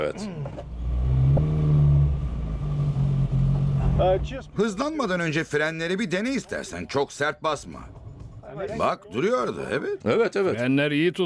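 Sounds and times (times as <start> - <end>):
speech: 0.0 - 0.8, 4.0 - 11.2
rebuilt car engine revving: 0.0 - 4.6.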